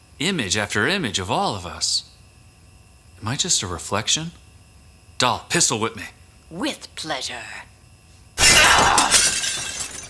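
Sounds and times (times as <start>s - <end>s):
speech: 0.2s - 2.1s, 3.2s - 4.4s, 5.2s - 7.7s
mirror glass shattering: 8.4s - 10.0s
tinkling glass shards: 8.4s - 10.0s.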